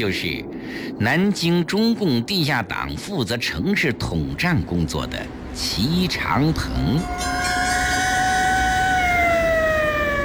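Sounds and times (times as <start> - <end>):
speech: 0.0 - 7.6
police car sirens approaching and passing: 6.4 - 10.2.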